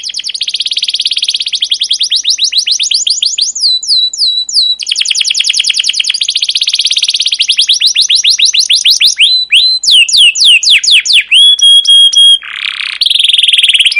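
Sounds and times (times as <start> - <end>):
captive canary chirping song: 0.0 - 13.9.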